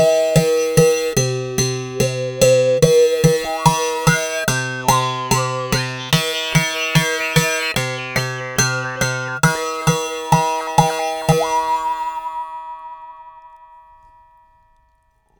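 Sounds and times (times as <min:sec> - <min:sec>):
jaw harps: 0:00.0 - 0:12.2
classical two-string instrument: 0:00.0 - 0:13.7.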